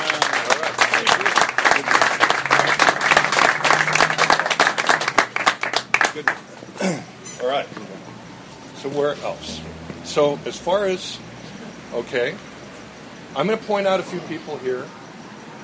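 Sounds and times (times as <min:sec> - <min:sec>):
audience applause for a group of participants: 0:00.0 - 0:06.4
speech: 0:06.2 - 0:07.9, 0:08.8 - 0:11.3, 0:11.9 - 0:12.5, 0:13.3 - 0:15.0.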